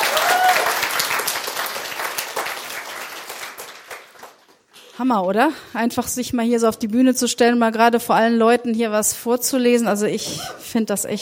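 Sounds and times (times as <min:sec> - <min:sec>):
audience applause: 0:00.0 - 0:04.6
speech: 0:05.0 - 0:11.2.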